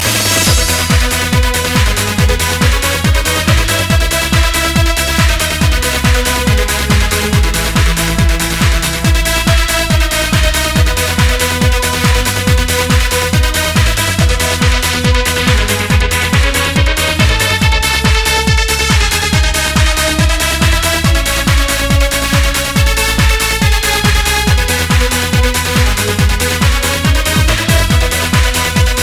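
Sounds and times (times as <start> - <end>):
trance music: 0.0 - 29.0.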